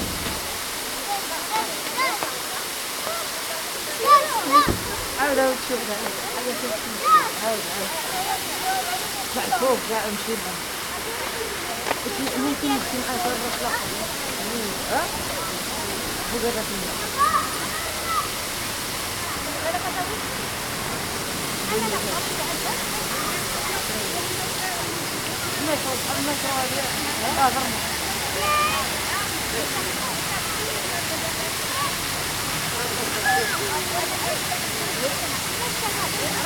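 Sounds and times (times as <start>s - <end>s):
waterfall in Tiznit: 0.0s - 36.4s.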